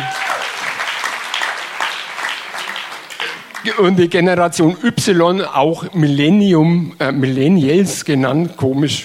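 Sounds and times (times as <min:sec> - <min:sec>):
audience applause: 0:00.0 - 0:04.0
speech: 0:03.6 - 0:09.0.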